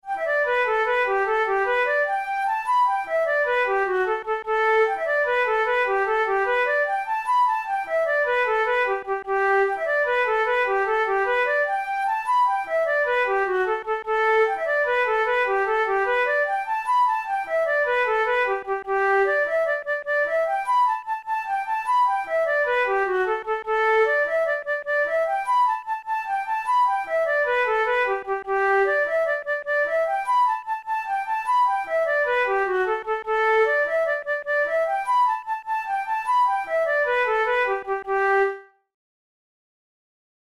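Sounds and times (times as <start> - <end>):
flute playing a jig: 0.0 - 38.9.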